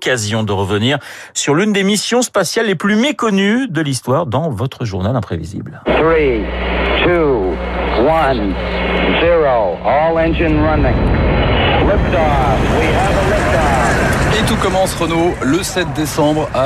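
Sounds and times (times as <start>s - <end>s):
speech: 0.0s - 13.7s, 14.4s - 16.6s
Saturn V rocket launching from pad: 5.9s - 16.6s.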